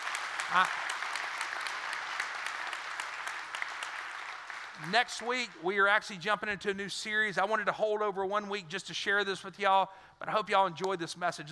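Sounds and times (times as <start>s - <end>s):
audience clapping hands: 0.0s - 6.1s
speech: 0.5s - 0.9s, 4.8s - 11.5s.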